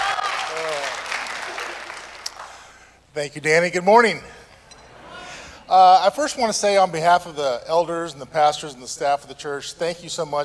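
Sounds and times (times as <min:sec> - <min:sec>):
audience applause: 0:00.0 - 0:02.6
speech: 0:03.2 - 0:04.4, 0:05.7 - 0:10.4.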